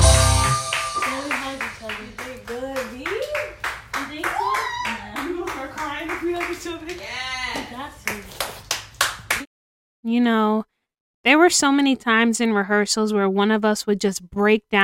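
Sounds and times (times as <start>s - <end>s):
mother cheering and clapping: 0.2s - 9.5s
speech: 11.4s - 14.8s.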